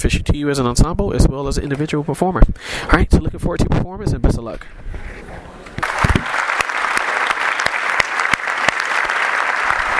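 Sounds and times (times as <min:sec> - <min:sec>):
speech: 0:00.0 - 0:05.2
audience applause: 0:05.8 - 0:09.9.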